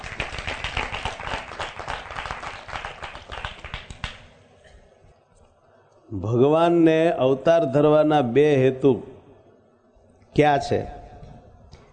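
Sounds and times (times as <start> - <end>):
audience clapping for the musicians at a religious storytelling gathering: 0.0 - 4.4
speech: 6.1 - 9.1, 10.4 - 11.0.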